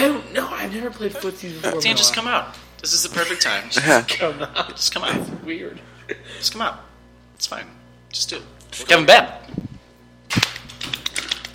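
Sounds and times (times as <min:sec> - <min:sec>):
speech: 0:00.8 - 0:09.7
hard hand clapping: 0:10.3 - 0:11.5.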